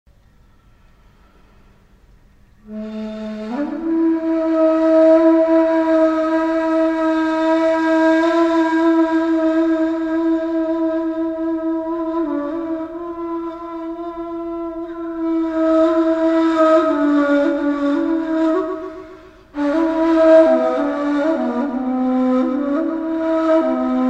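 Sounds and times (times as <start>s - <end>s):
ney flute taksim improvisation: 2.6s - 24.0s.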